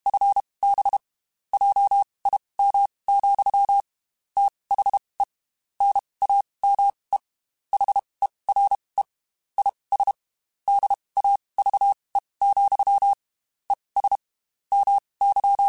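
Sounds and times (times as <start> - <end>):
Morse code CW code groups over ham radio: 0.0 - 15.6.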